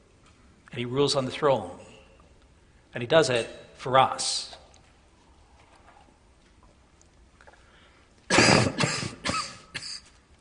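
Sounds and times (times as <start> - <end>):
speech: 0.8 - 1.9, 2.9 - 4.6
person coughing from a tickle in the throat: 8.3 - 10.2.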